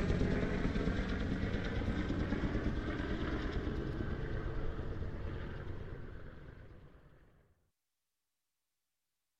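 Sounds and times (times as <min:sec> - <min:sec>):
army helicopter approaching and passing: 0:00.0 - 0:07.4.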